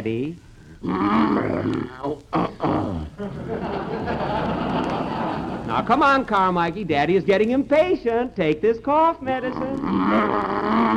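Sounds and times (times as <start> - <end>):
speech: 0.0 - 4.5, 5.8 - 10.9
bear growling and roaring: 0.8 - 3.6, 9.6 - 10.9
laughter: 3.2 - 5.9.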